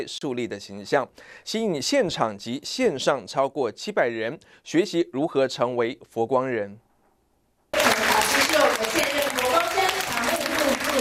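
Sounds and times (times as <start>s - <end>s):
speech: 0.0s - 6.8s
large audience applause: 7.8s - 10.9s.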